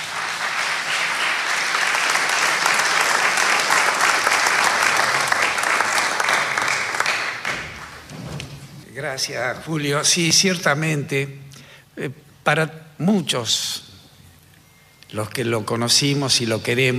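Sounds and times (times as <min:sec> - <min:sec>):
audience applause: 0:00.0 - 0:08.1
speech: 0:09.1 - 0:11.4, 0:12.0 - 0:13.9, 0:15.1 - 0:16.9.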